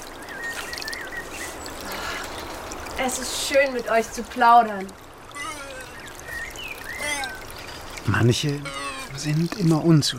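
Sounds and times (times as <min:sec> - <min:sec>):
small brook gurgling at foot of hillside beneath holm oaks: 0:00.0 - 0:10.1
speech: 0:03.0 - 0:05.0, 0:08.1 - 0:10.1.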